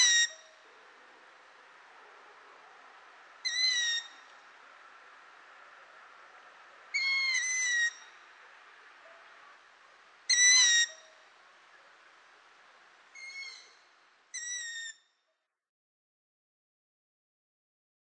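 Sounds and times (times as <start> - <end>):
long-eared owl giving deep even hoots: 0.0 - 0.5, 3.4 - 4.2, 6.9 - 8.1, 10.3 - 11.1, 13.2 - 13.8.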